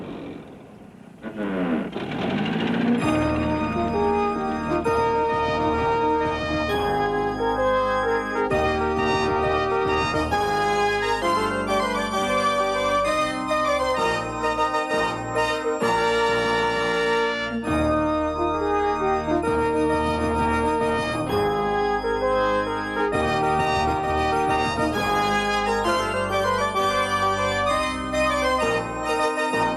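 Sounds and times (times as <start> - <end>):
old wrecked Jeep motor running: 1.2 - 4.2
music: 2.8 - 29.7.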